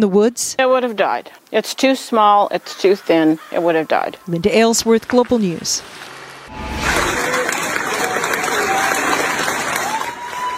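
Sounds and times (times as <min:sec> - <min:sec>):
speech: 0:00.0 - 0:07.3
crowd cheering American firefighters arriving in Australia: 0:06.5 - 0:10.5
crowd applause welcoming American firefighters: 0:07.1 - 0:10.5.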